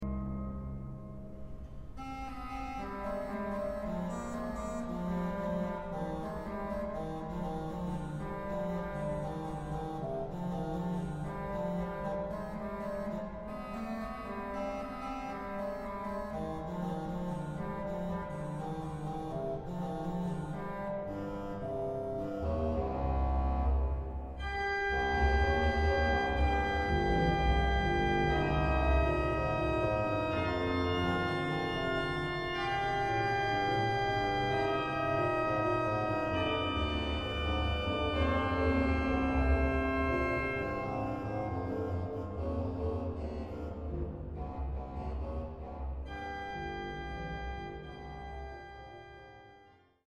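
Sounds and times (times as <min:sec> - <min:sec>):
basso continuo accompaniment: 0:00.0 - 0:50.0.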